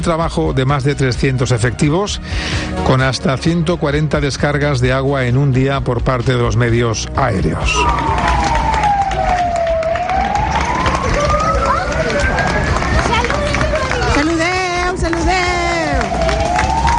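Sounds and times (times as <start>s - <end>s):
speech: 0.0s - 8.6s
residents applauding passing firefighters in Villalonga: 7.6s - 16.9s.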